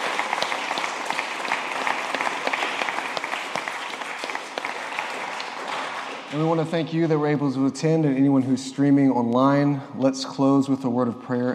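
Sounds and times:
audience applause: 0.0s - 7.2s
speech: 6.3s - 11.5s.

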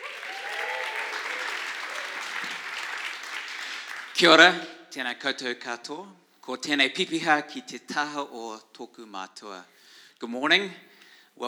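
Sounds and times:
audience applause welcoming a speaker: 0.0s - 4.6s
speech: 4.2s - 11.4s.

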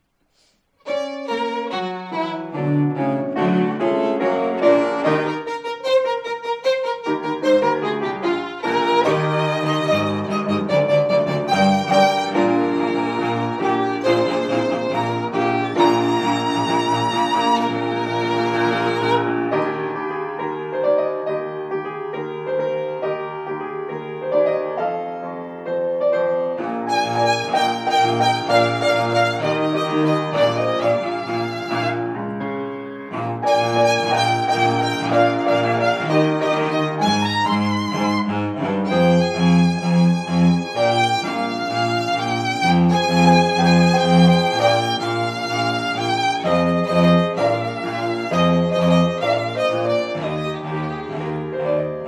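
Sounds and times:
piano trio: 0.0s - 52.0s.

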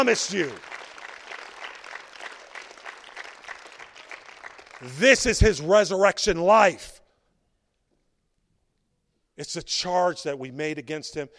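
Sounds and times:
speech: 0.0s - 0.8s, 4.8s - 7.0s, 9.4s - 11.3s
crowd clapping: 0.0s - 5.6s.

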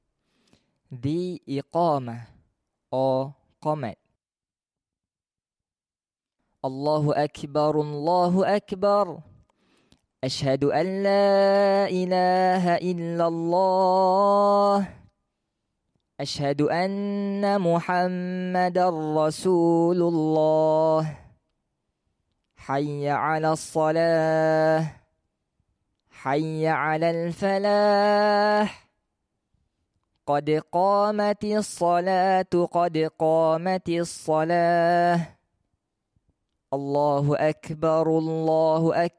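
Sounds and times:
Iqamah call to prayer: 0.9s - 4.0s, 6.6s - 9.3s, 10.2s - 15.0s, 16.2s - 21.2s, 22.6s - 25.1s, 26.2s - 28.9s, 30.3s - 35.4s, 36.8s - 39.1s.

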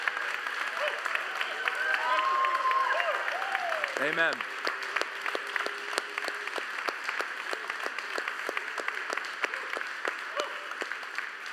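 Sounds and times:
large crowd applauding: 0.0s - 11.5s
people shouting praise and cheering: 0.6s - 4.4s, 9.4s - 10.8s
speech: 4.0s - 4.5s.

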